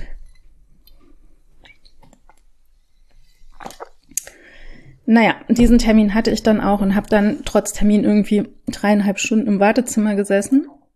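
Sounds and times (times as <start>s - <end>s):
mouth and handling noises: 0.2s - 4.4s
slurp and swallow of a drink: 3.1s - 4.3s
speech: 5.1s - 10.8s.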